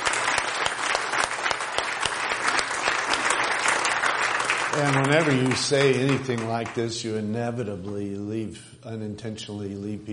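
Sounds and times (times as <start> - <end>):
crowd applauding: 0.0 - 7.1
speech: 4.8 - 10.1.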